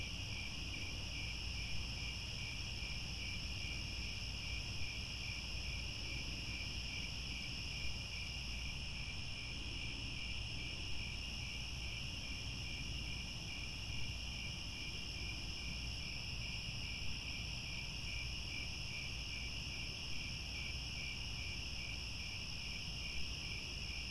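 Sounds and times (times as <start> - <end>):
crickets chirping chorus: 0.0 - 24.0.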